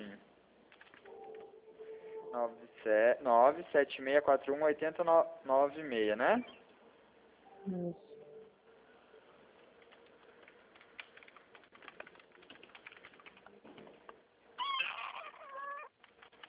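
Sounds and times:
speech: 0:02.3 - 0:06.6, 0:07.6 - 0:08.1
kittens meowing: 0:14.6 - 0:15.9.

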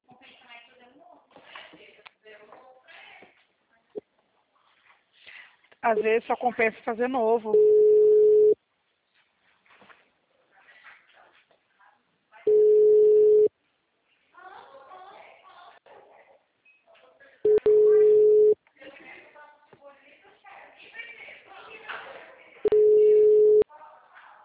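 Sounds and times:
speech: 0:05.8 - 0:07.8
ringing tone of an outgoing telephone call: 0:07.6 - 0:08.6, 0:12.5 - 0:13.5, 0:17.5 - 0:18.6, 0:22.7 - 0:23.6.

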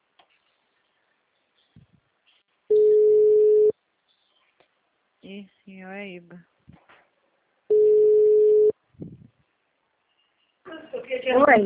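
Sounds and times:
telephone busy tone after a dropped call: 0:02.7 - 0:03.7, 0:07.7 - 0:08.7
speech: 0:05.3 - 0:06.6, 0:11.1 - 0:11.6.

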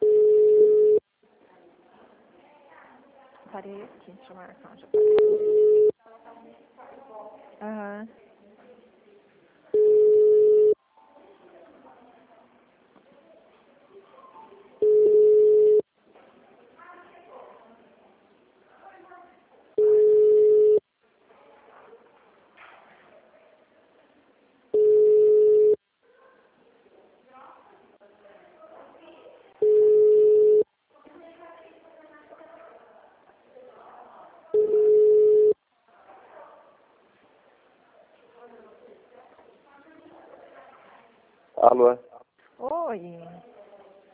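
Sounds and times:
ringback tone of an outgoing phone call: 0:00.0 - 0:01.0, 0:05.0 - 0:05.9, 0:09.8 - 0:10.8, 0:14.8 - 0:15.8, 0:19.8 - 0:20.8, 0:24.8 - 0:25.8, 0:29.6 - 0:30.6, 0:34.6 - 0:35.6
people talking quietly: 0:00.0 - 0:44.1
speech: 0:03.6 - 0:08.2, 0:41.7 - 0:43.5.

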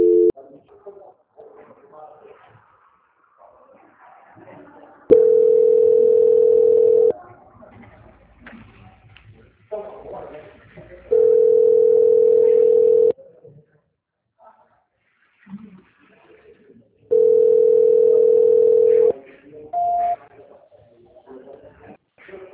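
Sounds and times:
telephone ringing tone during a call transfer: 0:00.0 - 0:00.3, 0:05.1 - 0:07.1, 0:11.1 - 0:13.1, 0:17.1 - 0:19.1.

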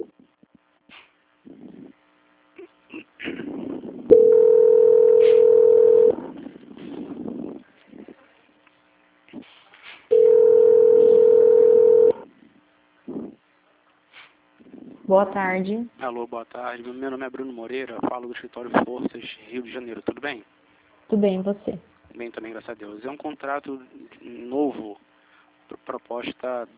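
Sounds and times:
faint line noise and murmuring: 0:00.0 - 0:26.7
telephone call transfer tones: 0:04.1 - 0:06.2, 0:10.1 - 0:12.2
speech: 0:15.1 - 0:25.0, 0:26.0 - 0:26.7.

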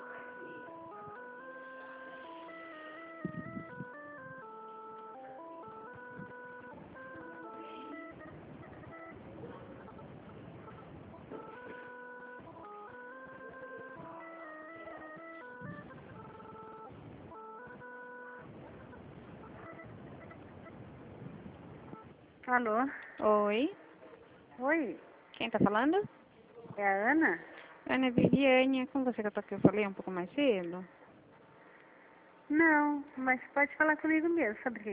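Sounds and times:
telephone hold music during a call transfer: 0:00.0 - 0:22.3
speech: 0:22.5 - 0:23.8, 0:24.6 - 0:26.2, 0:26.8 - 0:31.0, 0:32.5 - 0:34.9.

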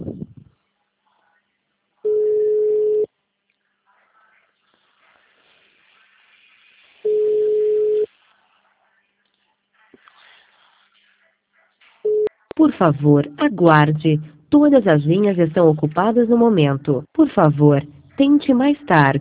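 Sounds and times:
telephone ringback tone of an unanswered call: 0:02.1 - 0:03.1, 0:07.1 - 0:08.1
speech: 0:12.6 - 0:19.2.

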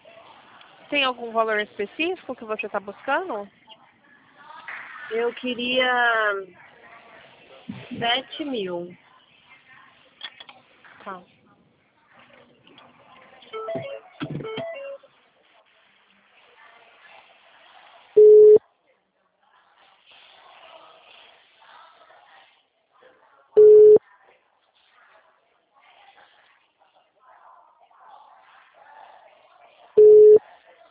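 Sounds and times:
speech: 0:00.9 - 0:03.6, 0:05.1 - 0:06.6, 0:08.0 - 0:09.0, 0:11.1 - 0:11.3
telephone call tone: 0:13.6 - 0:15.0, 0:18.2 - 0:18.6, 0:23.6 - 0:24.0, 0:30.0 - 0:30.4.

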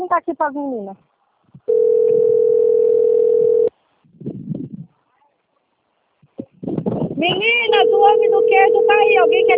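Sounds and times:
speech: 0:00.2 - 0:02.4, 0:07.2 - 0:09.5
telephone ringing tone, call unanswered: 0:01.7 - 0:03.7, 0:07.6 - 0:09.5.

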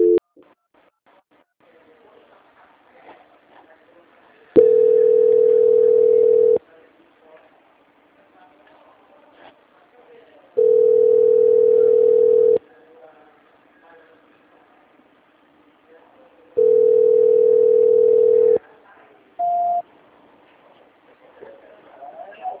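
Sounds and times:
telephone line tone while a call is being transferred: 0:00.0 - 0:00.2, 0:04.6 - 0:06.6, 0:10.6 - 0:12.6, 0:16.6 - 0:18.6, 0:19.4 - 0:19.8.

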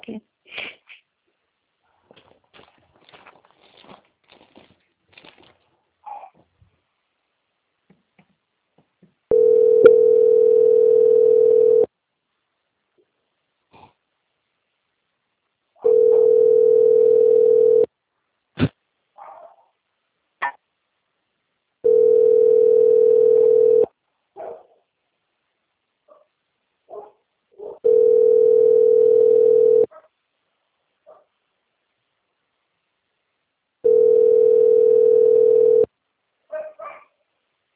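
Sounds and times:
telephone line tone while a call is being transferred: 0:09.3 - 0:11.9, 0:15.8 - 0:17.9, 0:21.8 - 0:23.9, 0:27.9 - 0:29.9, 0:33.8 - 0:35.9.

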